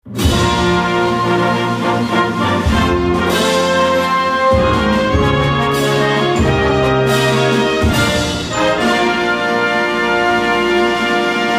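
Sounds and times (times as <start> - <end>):
music: 0.0 - 11.5.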